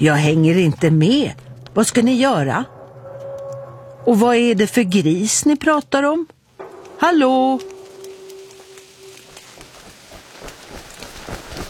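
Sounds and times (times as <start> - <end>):
speech: 0.0 - 2.8, 4.0 - 6.4, 7.0 - 7.7
rain falling: 6.6 - 11.6.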